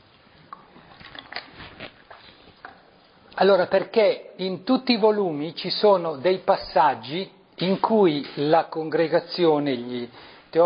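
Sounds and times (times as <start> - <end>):
person sipping a drink of water: 0.2 - 3.4
speech: 3.4 - 10.6.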